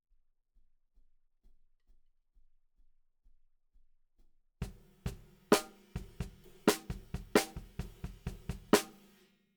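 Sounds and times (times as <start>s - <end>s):
snare drum: 4.6s - 9.2s.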